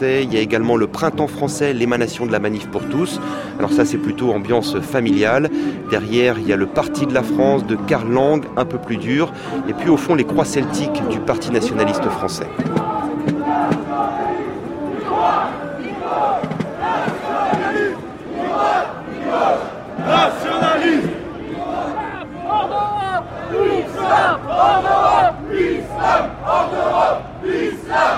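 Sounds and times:
speech: 0:00.0 - 0:13.4
crowd chanting slogans: 0:08.4 - 0:28.1.

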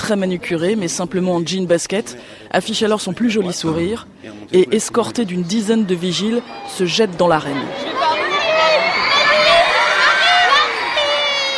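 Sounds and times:
speech: 0:00.1 - 0:08.0
hysterical crowd of teenage fans: 0:06.1 - 0:11.5.

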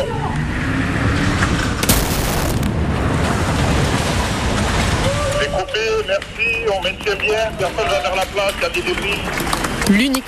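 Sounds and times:
steady roaring rumble: 0:00.0 - 0:05.3
sports car crashing between trucks: 0:01.1 - 0:05.2
speech: 0:06.4 - 0:10.2.

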